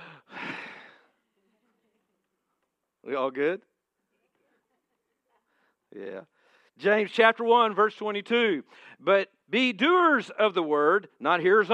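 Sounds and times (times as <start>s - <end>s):
church congregation taking a deep breath together: 0.0s - 1.1s, 8.7s - 9.0s
speech: 3.0s - 3.7s, 5.9s - 11.7s.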